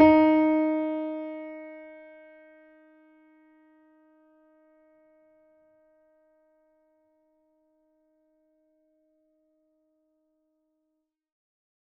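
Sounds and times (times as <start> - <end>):
mini grand piano: 0.0 - 5.0.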